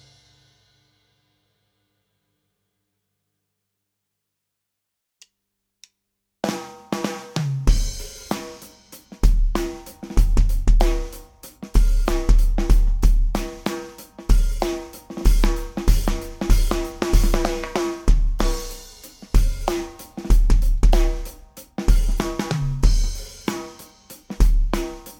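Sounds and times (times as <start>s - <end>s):
demo drums: 0.0s - 1.4s, 6.4s - 25.1s.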